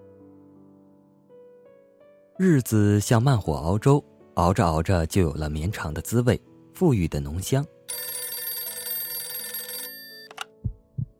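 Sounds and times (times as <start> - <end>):
speech: 2.4 - 7.8
desk telephone ringing urgently: 7.9 - 10.6.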